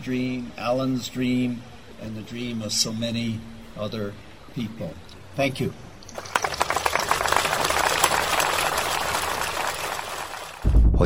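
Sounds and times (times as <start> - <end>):
speech: 0.0 - 6.4
audience applause: 6.1 - 10.7.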